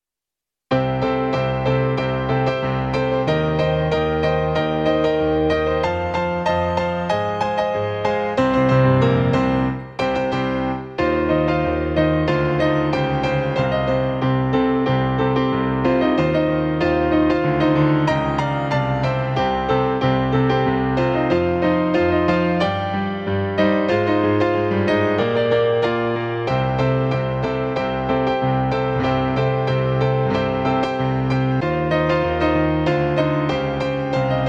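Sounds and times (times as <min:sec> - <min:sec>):
piano: 0:00.7 - 0:34.4.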